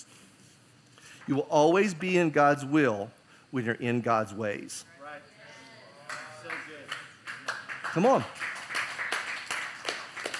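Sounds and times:
speech: 1.3s - 5.3s, 7.9s - 8.4s
soft applause: 5.6s - 10.3s
crowd clapping in a steady rhythm: 6.0s - 10.3s.

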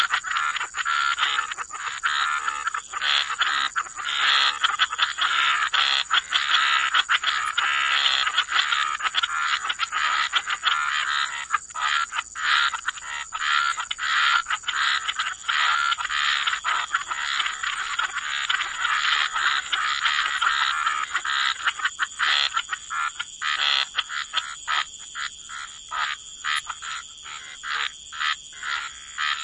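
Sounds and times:
frog chorus rasping: 0.0s - 29.4s.

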